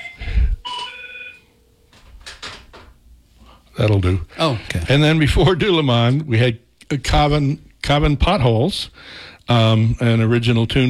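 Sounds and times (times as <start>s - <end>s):
telephone ringing with an incoming call: 0.0s - 1.5s
speech: 3.8s - 10.8s.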